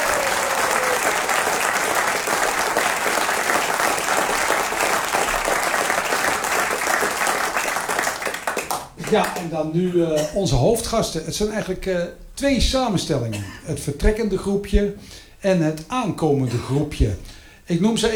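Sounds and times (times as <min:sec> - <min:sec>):
audience applause: 0:00.0 - 0:09.6
speech: 0:09.1 - 0:18.1.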